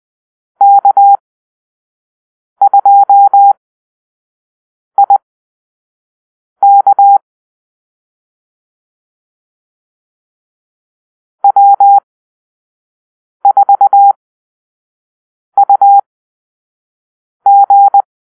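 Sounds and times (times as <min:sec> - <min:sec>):
morse code beeps in a call-sign drill: 0:00.6 - 0:01.2, 0:02.6 - 0:03.6, 0:06.6 - 0:07.2, 0:11.4 - 0:12.0, 0:13.4 - 0:14.1, 0:15.6 - 0:16.0, 0:17.5 - 0:18.1.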